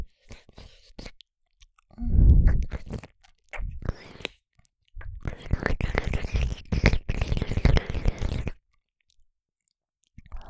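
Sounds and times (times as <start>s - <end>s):
ear licking in the right ear: 0.3s - 4.4s, 4.9s - 8.6s.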